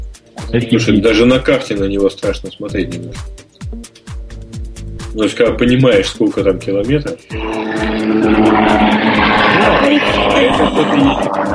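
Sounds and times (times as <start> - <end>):
speech: 0.5 - 3.4, 5.2 - 11.5
helicopter flying overhead: 4.4 - 11.5.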